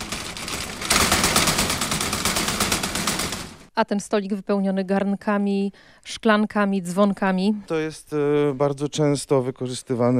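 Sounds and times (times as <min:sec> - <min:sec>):
steel door rattled hard: 0:00.0 - 0:03.7
speech: 0:03.8 - 0:10.1.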